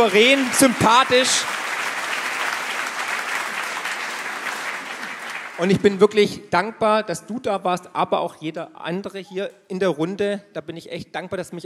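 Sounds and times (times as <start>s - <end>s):
speech: 0.0s - 1.6s, 5.6s - 11.6s
audience applause: 0.0s - 6.0s.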